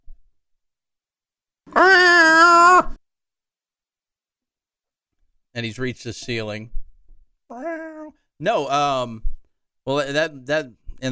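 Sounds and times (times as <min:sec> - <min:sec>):
speech: 0:01.7 - 0:02.1, 0:05.6 - 0:06.8, 0:08.4 - 0:11.1
cat meowing sound effect: 0:01.7 - 0:03.0, 0:07.5 - 0:08.1.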